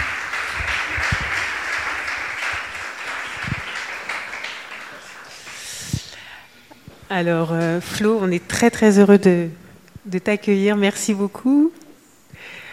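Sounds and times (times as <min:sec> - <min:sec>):
audience applause: 0:00.0 - 0:05.9
speech: 0:07.1 - 0:11.8.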